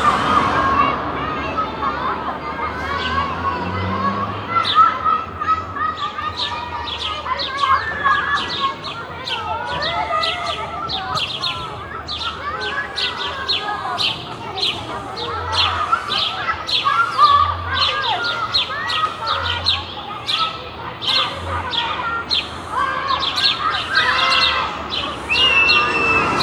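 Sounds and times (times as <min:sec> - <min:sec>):
playground ambience in Germany: 0:00.0 - 0:26.4.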